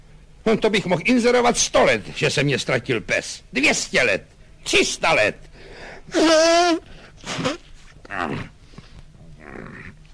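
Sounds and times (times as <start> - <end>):
speech: 0.4 - 8.5
loud honking nose blow imitated by a voice: 6.1 - 7.9.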